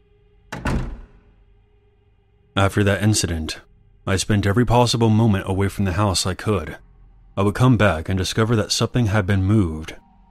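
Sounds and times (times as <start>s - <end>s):
apartment door swinging shut: 0.5s - 1.3s
speech: 2.6s - 10.0s.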